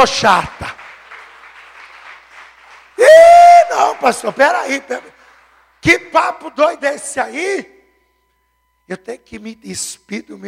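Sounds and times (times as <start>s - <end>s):
speech: 0.0s - 0.8s, 3.0s - 5.1s, 5.8s - 7.8s, 8.9s - 10.4s
audience applause: 0.0s - 5.8s.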